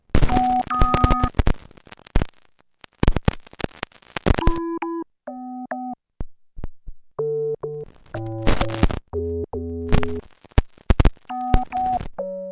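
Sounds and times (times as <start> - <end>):
GR-700 guitar synthesizer failure: 0.1 - 2.3, 3.0 - 4.7, 7.8 - 12.2.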